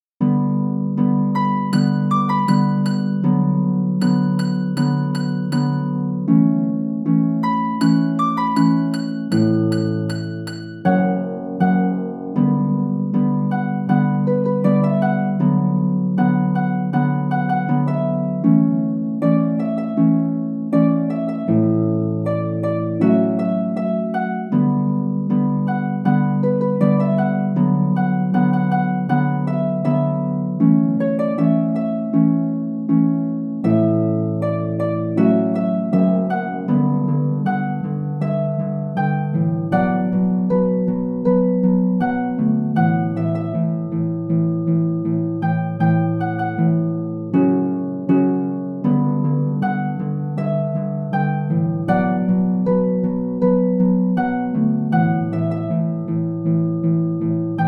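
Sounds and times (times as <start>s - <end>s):
instrumental music: 0.0s - 57.6s.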